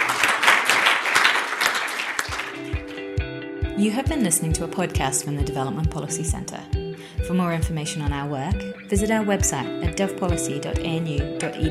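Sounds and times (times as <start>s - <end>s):
audience applauding the authors after a talk: 0.0s - 3.1s
speech: 3.8s - 11.6s.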